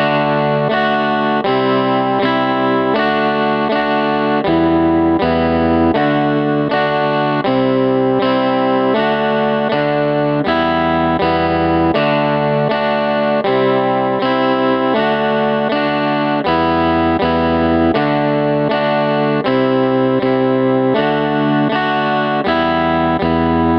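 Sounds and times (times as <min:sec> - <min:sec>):
guitar at 80 bpm: 0:00.0 - 0:23.7.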